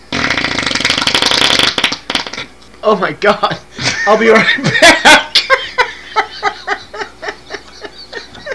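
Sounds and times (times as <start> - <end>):
fart: 0.1 - 2.5
laughter: 3.8 - 8.5.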